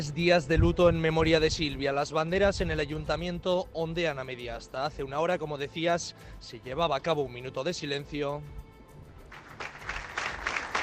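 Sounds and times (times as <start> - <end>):
speech: 0.0 - 8.6
applause of municipal council members and neighbours: 9.3 - 10.8.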